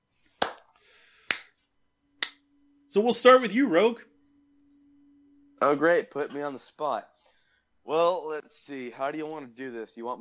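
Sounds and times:
golf clap: 0.4s - 1.6s
speech: 2.9s - 4.1s, 5.6s - 7.3s, 7.9s - 10.1s.

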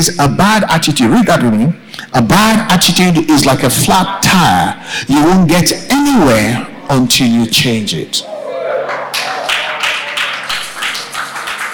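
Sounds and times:
speech: 0.0s - 8.3s
audience clapping: 8.8s - 11.7s.

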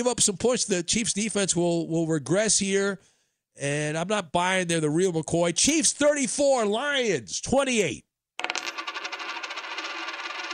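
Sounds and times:
speech: 0.0s - 8.1s
penny dropping and rattling on a hard surface: 8.4s - 10.5s.

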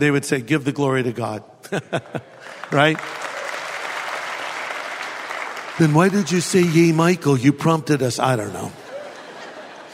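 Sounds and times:
speech: 0.0s - 3.3s, 5.8s - 8.8s
laughter: 1.6s - 2.8s, 8.4s - 9.9s
crowd applauding: 2.0s - 7.7s.

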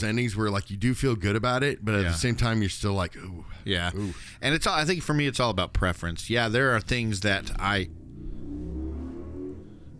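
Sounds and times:
speech: 0.0s - 8.0s
4x4 engine revving at a drag race: 7.3s - 9.9s.

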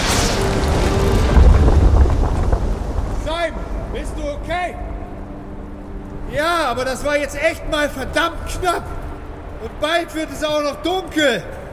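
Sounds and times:
falling rock rushing past: 0.0s - 5.2s
speech: 6.7s - 9.0s, 9.6s - 11.6s.

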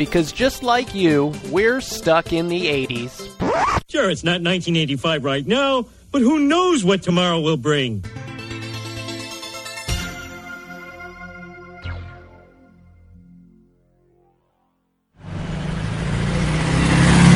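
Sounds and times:
speech: 0.0s - 8.2s
tonal sounds: 9.9s - 14.6s
car engine and road noise on a Route 66 road trip: 15.2s - 17.3s.

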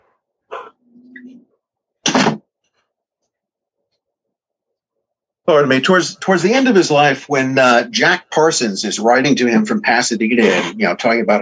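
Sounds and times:
door being shut: 2.0s - 2.4s
speech: 5.5s - 11.4s.

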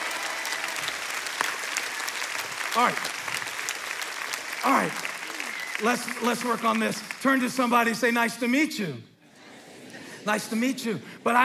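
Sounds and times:
many hands clapping: 0.0s - 7.8s
speech: 2.8s - 3.2s, 4.6s - 5.1s, 5.8s - 9.1s, 10.2s - 11.4s
laughter: 9.2s - 11.4s.

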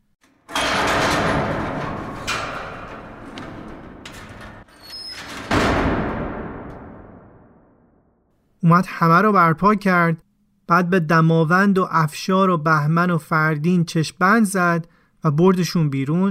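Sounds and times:
heavy prison door opening with loud bang: 0.3s - 7.9s
speech: 8.7s - 16.3s.

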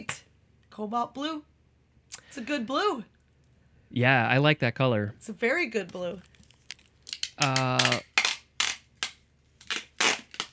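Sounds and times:
speech: 0.8s - 1.5s, 2.1s - 3.1s, 3.9s - 6.3s, 7.4s - 8.1s
roll of packing tape clattering on the floor: 6.2s - 10.5s.

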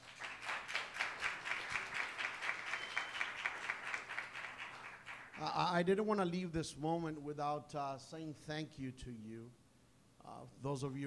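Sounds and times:
audience applause: 0.0s - 5.4s
speech: 5.4s - 9.6s, 10.3s - 11.0s.

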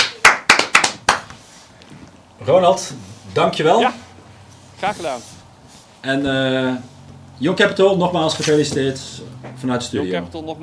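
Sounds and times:
applause for the winners: 0.0s - 1.4s
speech: 2.4s - 4.0s, 4.8s - 5.3s, 6.0s - 10.6s.

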